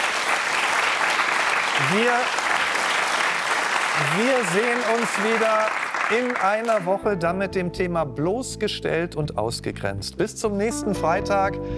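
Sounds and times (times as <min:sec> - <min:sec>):
audience applause: 0:00.0 - 0:07.0
speech: 0:01.8 - 0:02.4, 0:04.0 - 0:11.7.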